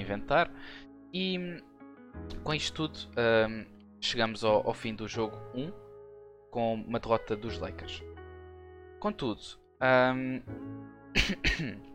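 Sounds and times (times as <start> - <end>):
speech: 0.1 - 5.8, 6.5 - 8.2, 9.0 - 11.9
person coughing from choking on butter biscuits: 11.2 - 11.9.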